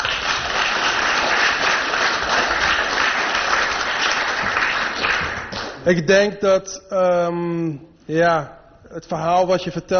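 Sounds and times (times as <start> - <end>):
audience applause after a lecture: 0.0 - 5.8
speech: 5.8 - 9.9.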